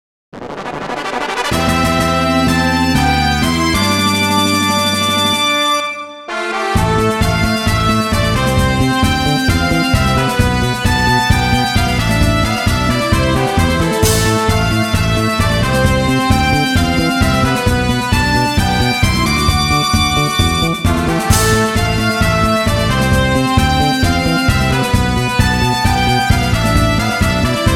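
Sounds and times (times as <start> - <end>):
fanfare: 0.5 - 27.7.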